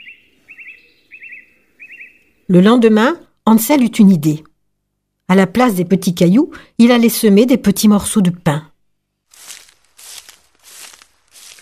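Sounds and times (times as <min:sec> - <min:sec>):
speech: 0:02.5 - 0:04.5, 0:05.3 - 0:08.7
footsteps crunching over forest ground: 0:09.2 - 0:11.6.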